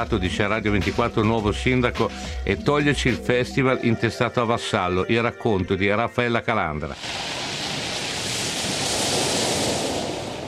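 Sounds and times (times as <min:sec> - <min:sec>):
speech: 0:00.0 - 0:07.4
sea waves washing onto a beach at Acciaroli in Cilento, Italy: 0:07.0 - 0:10.4.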